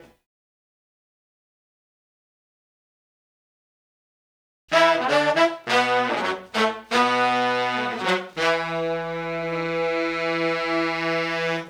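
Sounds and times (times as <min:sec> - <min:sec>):
1970s analog funk soul horns: 0:04.7 - 0:11.6.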